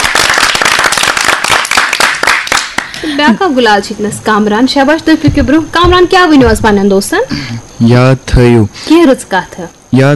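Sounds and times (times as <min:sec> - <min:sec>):
loud applause for a child: 0:00.0 - 0:03.0
speech: 0:03.0 - 0:10.1.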